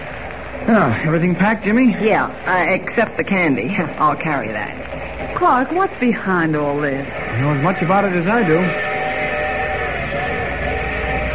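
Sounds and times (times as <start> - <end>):
speech: 0.7 - 8.9
train station whistle: 7.2 - 11.3.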